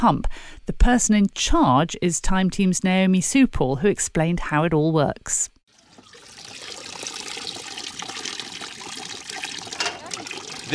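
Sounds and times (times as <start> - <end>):
speech: 0.0 - 5.6
water cascading through flotation tank sieves: 5.7 - 10.7.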